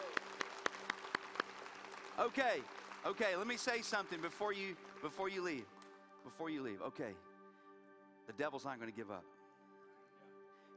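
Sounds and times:
church congregation clapping together in rhythm: 0.0 - 6.3
speech: 2.2 - 7.3, 8.3 - 9.3.

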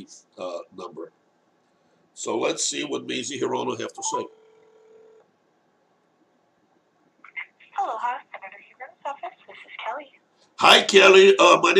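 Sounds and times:
speech: 0.0 - 1.1, 2.2 - 4.4, 10.7 - 11.7
telephone ringing: 4.0 - 5.2.

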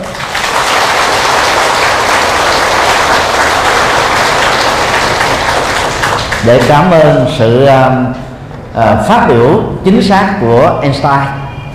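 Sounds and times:
audience applause: 0.0 - 6.9
speech: 6.4 - 8.2, 8.8 - 11.7.

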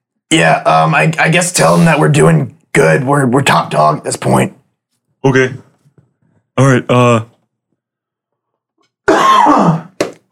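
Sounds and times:
speech: 0.3 - 4.6, 5.2 - 5.6, 6.6 - 7.3, 9.1 - 9.8
person sneezing: 9.0 - 10.0.

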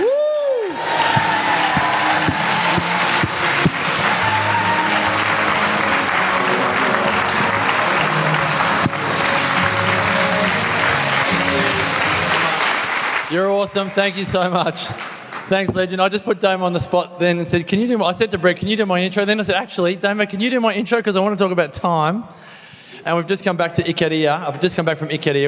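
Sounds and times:
audience applause and standing ovation: 0.0 - 15.6
speech: 13.6 - 25.4.

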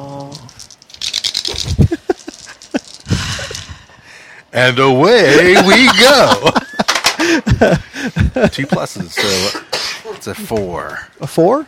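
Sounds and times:
dice being rolled: 0.2 - 3.7
speech: 1.5 - 1.9, 4.6 - 6.6, 7.6 - 11.6
laughter: 1.7 - 3.8, 5.2 - 9.2.

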